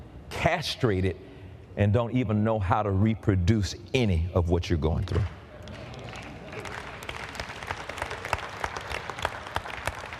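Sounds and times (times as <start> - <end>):
speech: 0.4 - 5.4
audience clapping: 5.1 - 10.1.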